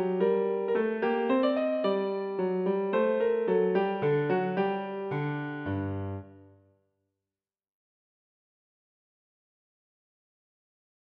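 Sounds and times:
piano piece: 0.0 - 6.7.

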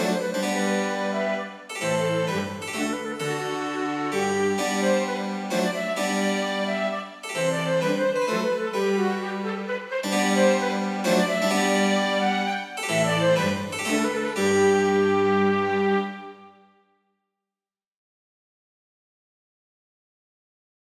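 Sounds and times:
minuet for flute violin cello and harpsichord: 0.0 - 16.7.

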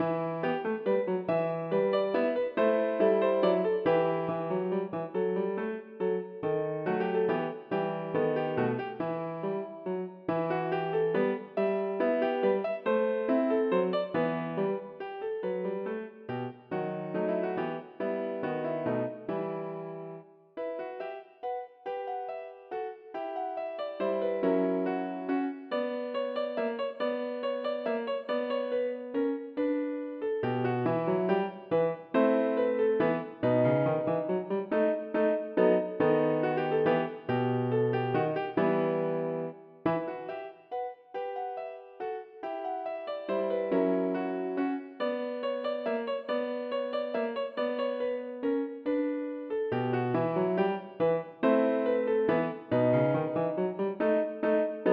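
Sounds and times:
piano minuet: 0.0 - 54.9.

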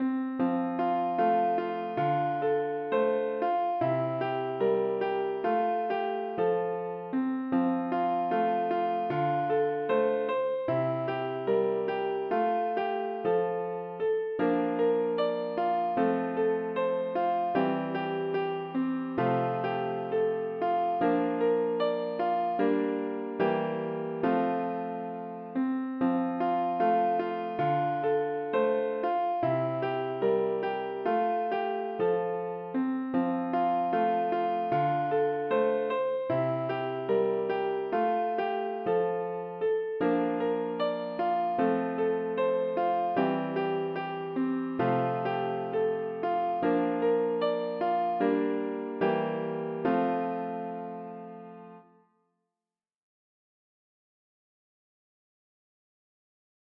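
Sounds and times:
piano: 0.0 - 52.1.

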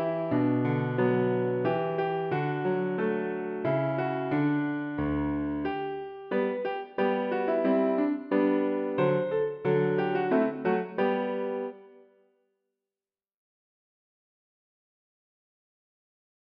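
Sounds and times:
piano: 0.0 - 12.3.

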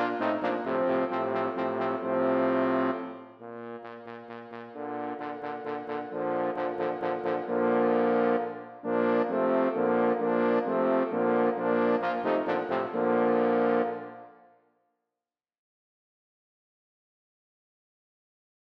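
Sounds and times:
baritone trombone: 0.0 - 14.3.

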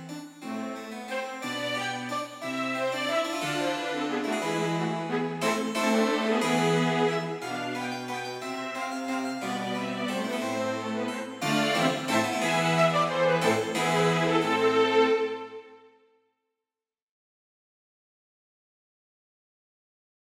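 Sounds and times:
harpsichord: 0.0 - 15.6
string quartet: 0.0 - 15.8.

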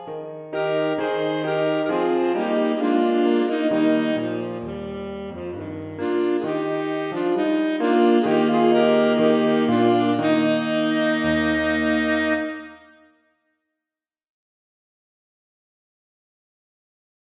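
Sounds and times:
piano playing a dance: 0.0 - 13.1
two alto saxophones playing a dance: 0.5 - 13.2.

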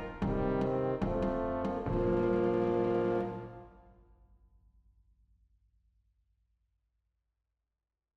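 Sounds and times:
brass quintet playing an aria: 0.0 - 3.9.

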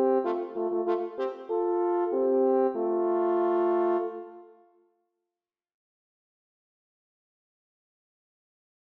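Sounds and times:
horn: 0.0 - 4.7.

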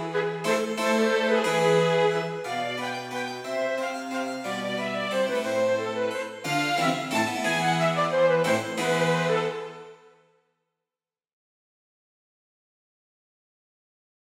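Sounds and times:
cello playing a gigue: 0.0 - 10.0
harpsichord playing a gigue: 0.0 - 10.0
violin playing a gigue: 0.0 - 10.1
flute playing a gigue: 0.0 - 10.2.

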